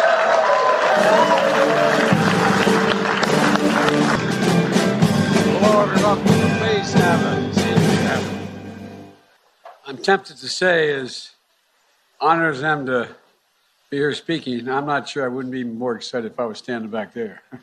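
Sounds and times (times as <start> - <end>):
whoops: 0.0 - 2.7
crowd applause and cheering at a Golden State Warriors event: 0.0 - 8.4
speech: 10.0 - 11.3, 12.2 - 13.2, 13.9 - 17.6.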